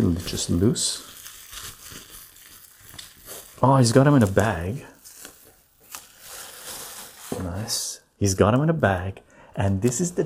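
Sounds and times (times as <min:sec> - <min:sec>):
speech: 0:00.0 - 0:01.7, 0:03.6 - 0:04.9, 0:07.7 - 0:10.2
bubble wrap crinkling while unpacking a package of cards: 0:00.0 - 0:08.0.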